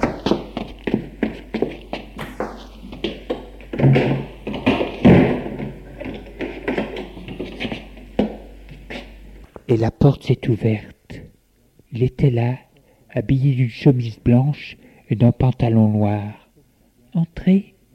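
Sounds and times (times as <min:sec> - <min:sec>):
footsteps approaching: 0:00.0 - 0:09.7
speech: 0:09.8 - 0:11.0, 0:11.9 - 0:16.4, 0:17.2 - 0:17.7.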